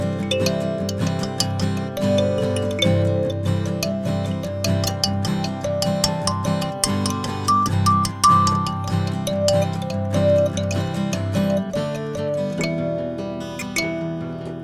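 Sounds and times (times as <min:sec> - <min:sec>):
treble kalimba with evil tuning: 0:00.0 - 0:14.6.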